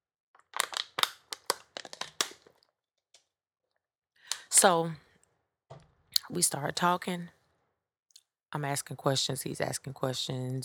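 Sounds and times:
plastic water bottle crinkling during a drink: 0.4 - 2.7
speech: 4.6 - 5.0, 6.3 - 7.4, 8.5 - 10.6.

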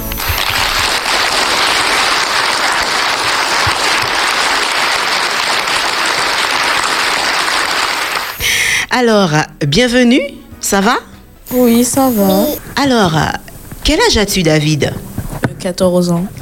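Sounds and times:
audience applause: 0.0 - 8.4
speech: 8.9 - 15.0, 15.6 - 16.3.

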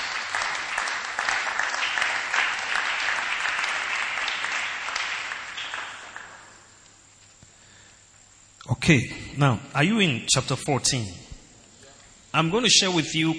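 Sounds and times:
audience clapping: 0.0 - 7.0
speech: 8.8 - 11.2, 12.4 - 13.3.

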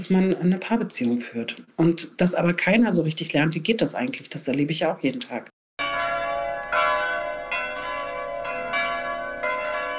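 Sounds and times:
speech: 0.0 - 5.6
church bells ringing: 5.8 - 9.9.

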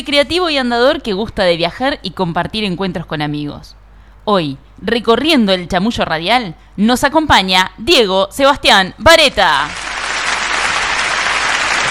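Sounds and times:
speech: 0.0 - 9.8
audience applause: 9.7 - 11.8.

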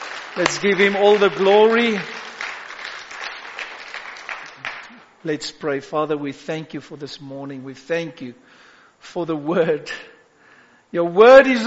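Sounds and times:
audience clapping: 0.0 - 5.1
speech: 0.4 - 2.2, 5.2 - 10.1, 10.9 - 11.6.

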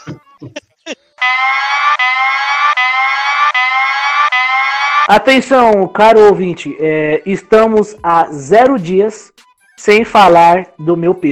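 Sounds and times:
alert siren sound effect played in a studio: 1.2 - 5.1
speech: 5.1 - 11.3.

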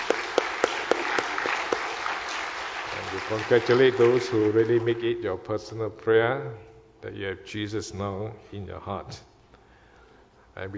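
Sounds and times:
audience clapping: 0.0 - 5.2
speech: 3.2 - 9.3, 10.6 - 10.7.

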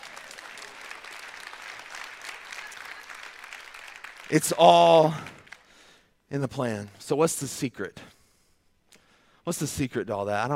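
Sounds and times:
audience applause: 0.0 - 5.7
speech: 4.3 - 5.4, 6.3 - 8.1, 9.5 - 10.5.

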